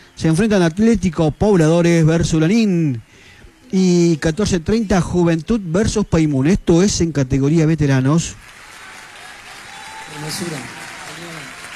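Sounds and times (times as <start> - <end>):
speech: 0.2 - 3.1, 3.7 - 8.6, 10.2 - 10.8
loud applause: 8.4 - 11.7.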